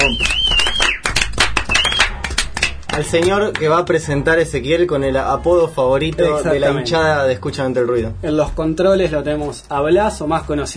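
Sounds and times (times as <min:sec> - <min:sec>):
applause: 0:00.0 - 0:03.9
speech: 0:03.0 - 0:10.7.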